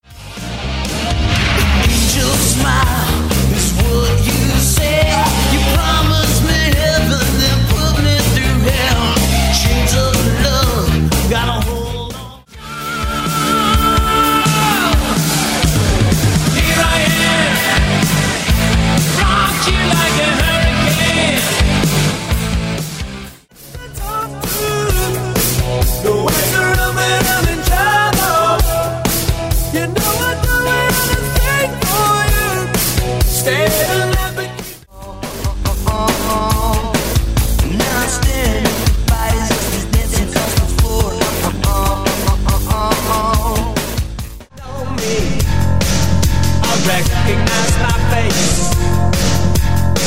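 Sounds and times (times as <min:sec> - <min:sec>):
80s pop rock megamix: 0:00.0 - 0:50.0.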